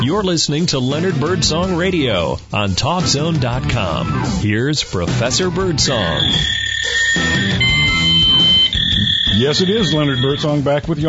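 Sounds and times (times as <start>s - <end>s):
speech: 0.0s - 7.6s, 9.4s - 11.0s
fax machine transmitting: 5.9s - 10.6s.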